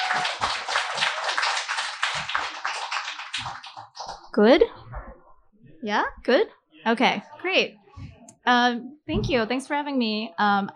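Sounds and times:
audience applause for a speaker: 0.0 - 4.1
speech: 0.1 - 0.7, 4.4 - 4.9, 5.8 - 7.8, 8.5 - 10.7.

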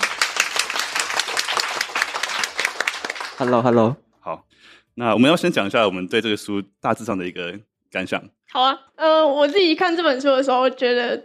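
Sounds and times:
audience applause: 0.0 - 3.9
speech: 3.4 - 11.2.

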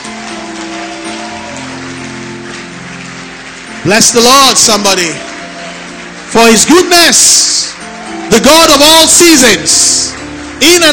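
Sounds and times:
audience clapping: 0.0 - 10.9
speech: 3.8 - 5.3, 6.4 - 7.5, 8.3 - 10.9.

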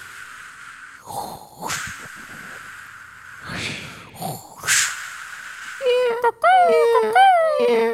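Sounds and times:
voice imitating ocean waves: 5.8 - 7.9.

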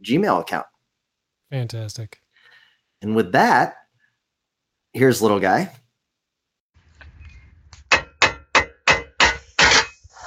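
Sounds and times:
speech: 0.0 - 0.7, 1.5 - 2.2, 3.0 - 3.8, 4.9 - 5.8
hammer striking metal while fixing a car: 7.9 - 10.0.

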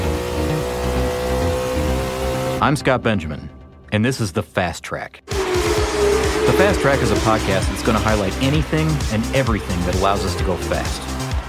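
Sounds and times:
engine revving during rapid acceleration: 0.0 - 2.7, 5.3 - 11.4
speech: 2.6 - 5.4, 6.0 - 11.1.

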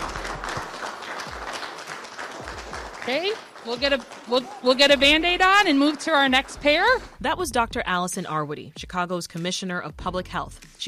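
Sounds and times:
applause: 0.0 - 7.2
speech: 3.1 - 10.8.

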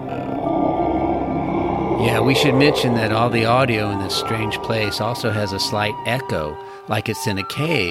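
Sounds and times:
unseen creature growling in the distance: 0.0 - 6.3
speech: 2.0 - 7.9.

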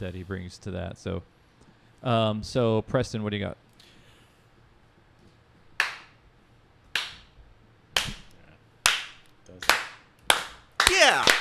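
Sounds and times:
speech: 0.0 - 1.4, 2.0 - 3.6
slow clap: 5.8 - 6.2, 7.0 - 7.3, 8.0 - 11.3.

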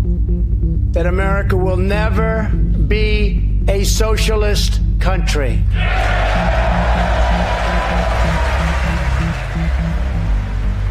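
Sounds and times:
speech: 1.0 - 8.5
huge round of applause at the State of the Union address: 5.8 - 10.8.

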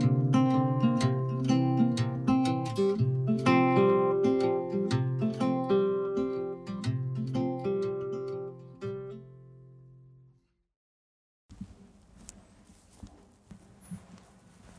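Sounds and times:
music: 0.0 - 10.5
footsteps walking up a dirt road with dogs: 11.5 - 14.7.

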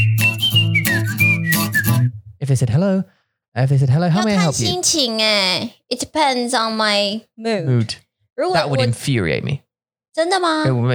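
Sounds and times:
whistled on-hold phone music: 0.0 - 2.2
speech: 2.5 - 9.6, 10.2 - 10.9.

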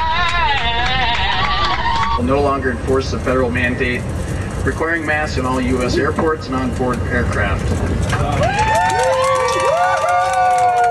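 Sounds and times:
people cheering: 0.0 - 2.2, 8.1 - 10.9
speech: 2.2 - 8.6.

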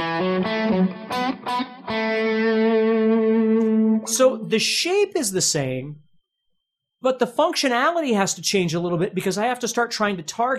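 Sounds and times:
distorted electric guitar playing major pentatonic phrase: 0.0 - 4.2
speech: 0.2 - 2.6, 4.0 - 6.1, 7.0 - 10.5.

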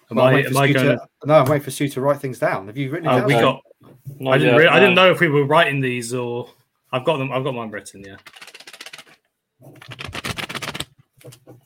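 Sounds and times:
speech: 0.1 - 8.5, 9.6 - 10.1
sheet of paper being flapped: 8.2 - 11.6.

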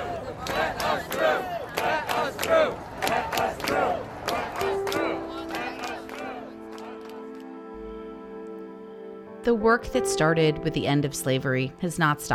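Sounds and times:
Black Lives Matter protesters chanting on a bridge: 0.0 - 7.4
speech: 9.5 - 12.3.

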